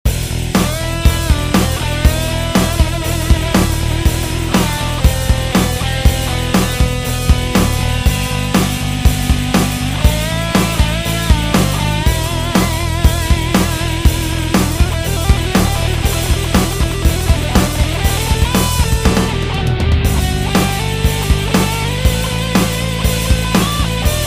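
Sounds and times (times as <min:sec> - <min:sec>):
drums: 0:00.0 - 0:24.2.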